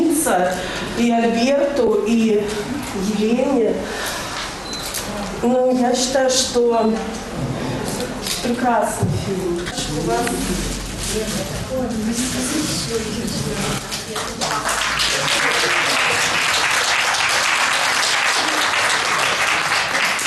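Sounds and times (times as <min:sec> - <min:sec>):
speech: 0:00.3 - 0:04.2, 0:05.4 - 0:07.5, 0:08.4 - 0:14.7
audience clapping at the premiere of the film «Пути Господни»: 0:13.9 - 0:20.2.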